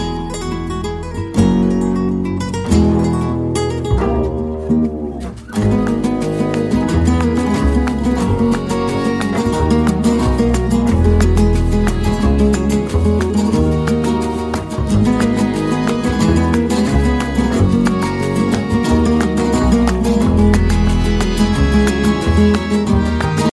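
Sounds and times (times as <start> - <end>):
flamenco music: 0.0 - 23.5.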